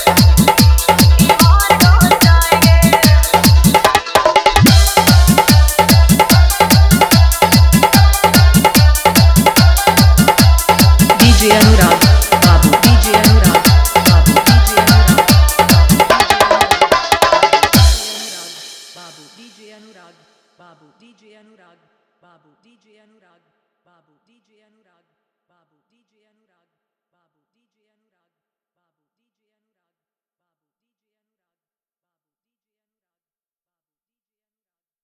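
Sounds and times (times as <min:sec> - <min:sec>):
dholak dance mix: 0:00.0 - 0:19.4.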